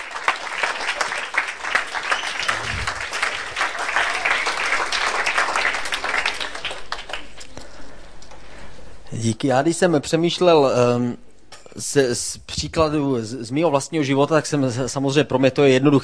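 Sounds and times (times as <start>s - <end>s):
audience applause: 0.0s - 7.5s
speech: 9.2s - 11.2s, 11.8s - 16.0s.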